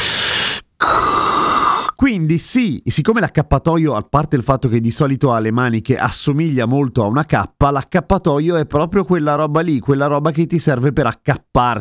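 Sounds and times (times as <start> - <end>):
person imitating Darth Vader mechanical breathing: 0.0 - 1.9
speech: 2.0 - 11.7.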